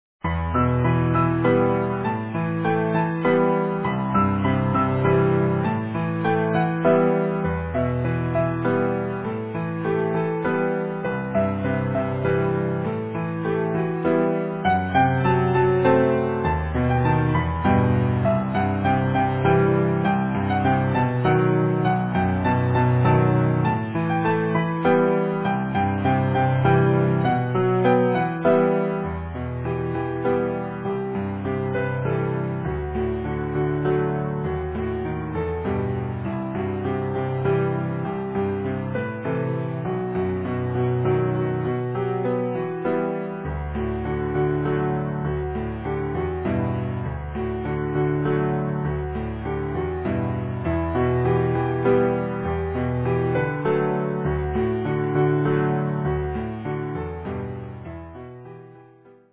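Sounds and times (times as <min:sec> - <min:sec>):
easy piano: 0:00.0 - 0:59.3.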